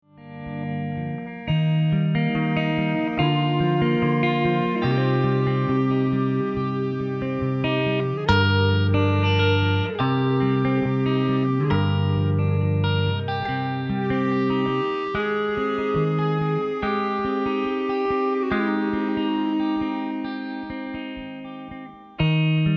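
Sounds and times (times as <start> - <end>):
guitar: 0.0 - 22.7.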